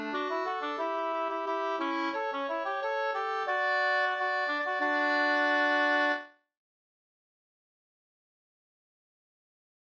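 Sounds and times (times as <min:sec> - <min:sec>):
folk walking tune: 0:00.0 - 0:06.2.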